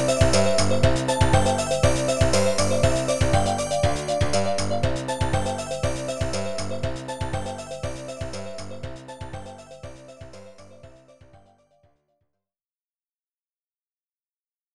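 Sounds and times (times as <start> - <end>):
samba music: 0.0 - 8.6.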